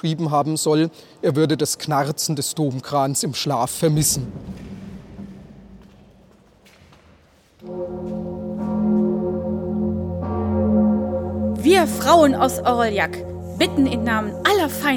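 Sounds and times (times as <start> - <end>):
speech: 0.0 - 4.7, 11.6 - 14.9
large bell of Notre Dame ringing: 7.6 - 14.9.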